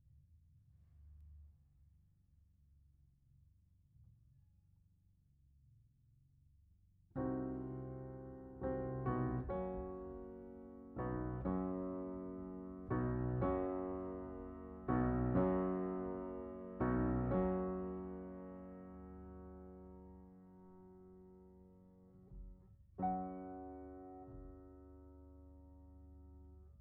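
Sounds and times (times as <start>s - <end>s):
piano: 7.2s - 26.7s.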